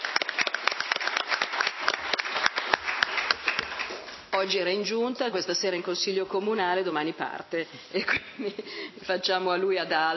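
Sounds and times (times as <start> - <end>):
applause for newlywed councillor: 0.0 - 4.6
speech: 4.4 - 10.1.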